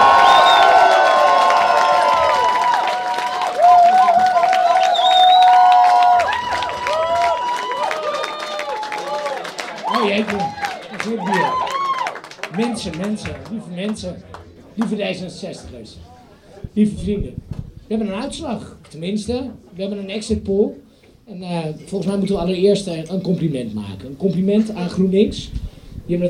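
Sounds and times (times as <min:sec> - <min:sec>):
audience applause and cheering: 0:00.0 - 0:13.6
speech: 0:12.8 - 0:16.1, 0:16.7 - 0:26.2.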